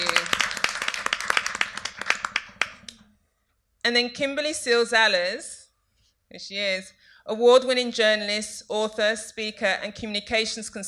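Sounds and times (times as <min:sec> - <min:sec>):
audience applause: 0:00.0 - 0:02.8
speech: 0:03.9 - 0:05.6, 0:06.3 - 0:10.8.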